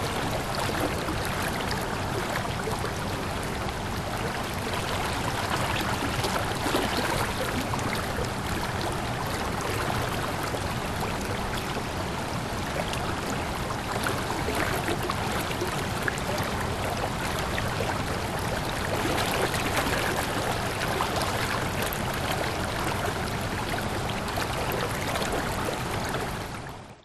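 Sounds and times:
creek water flowing against rock: 0.0s - 27.0s.

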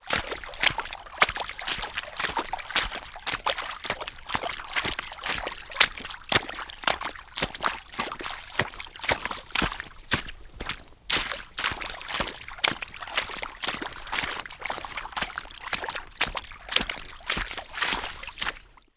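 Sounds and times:
boots walking through puddles in a forest: 0.0s - 18.9s.

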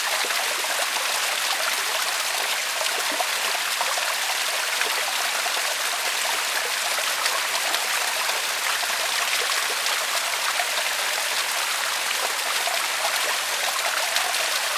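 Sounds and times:
waterfall running slowly over a rock face in Australia: 0.0s - 14.7s.

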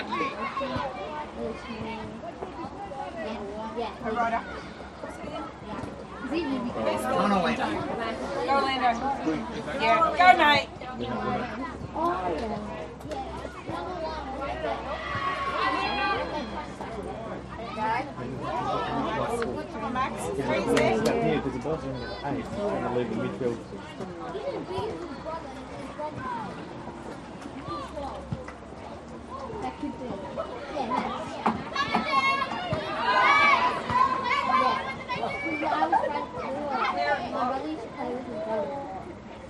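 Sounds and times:
spectators chattering in small stand at school soccer competition: 0.0s - 39.4s
parents and children cheering at school soccer game: 14.8s - 16.5s, 31.7s - 36.0s.

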